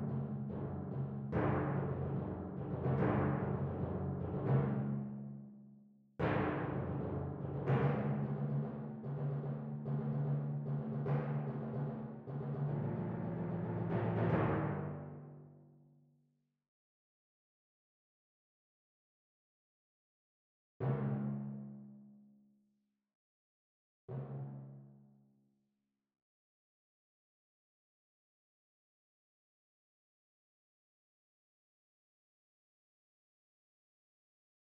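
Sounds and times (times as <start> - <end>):
timpani: 0.0 - 5.4, 6.2 - 15.6, 20.8 - 21.8.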